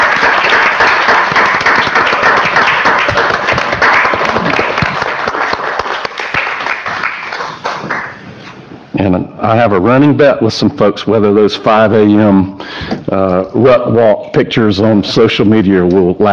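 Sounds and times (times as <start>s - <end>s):
audience applause: 0.0s - 8.3s
speech: 9.5s - 16.3s.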